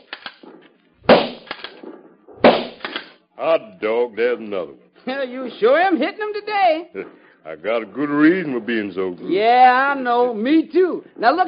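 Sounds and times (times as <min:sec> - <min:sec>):
gunshots during rifle target practice: 0:00.0 - 0:03.2
speech: 0:03.4 - 0:11.4.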